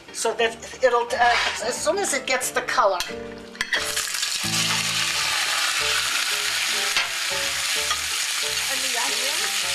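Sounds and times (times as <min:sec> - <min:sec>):
speech: 0:00.2 - 0:04.6
meat sizzling in a hot saucepan with vegetable oil: 0:03.4 - 0:09.7.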